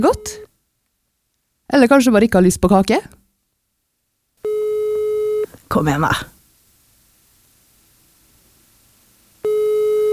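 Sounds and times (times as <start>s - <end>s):
speech: 0.0s - 0.5s, 1.7s - 3.2s, 5.7s - 6.4s
telephone line tone during an unanswered call: 0.0s - 0.5s, 4.4s - 5.5s, 9.4s - 10.1s.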